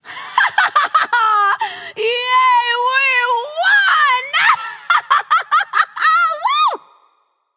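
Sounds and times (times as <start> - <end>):
laughter: 0.1 - 1.7, 4.4 - 6.6
woman cheering: 1.0 - 6.8.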